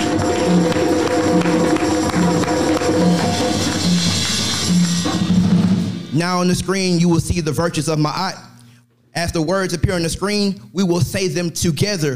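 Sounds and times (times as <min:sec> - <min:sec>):
audience hand clapping: 0:00.0 - 0:05.8
speech: 0:06.2 - 0:08.4, 0:09.2 - 0:12.1.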